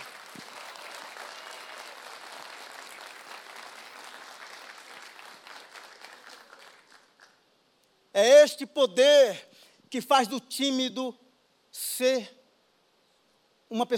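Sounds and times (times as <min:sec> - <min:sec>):
applause: 0:00.0 - 0:07.5
speech: 0:08.2 - 0:11.2, 0:11.8 - 0:12.4, 0:13.7 - 0:13.9.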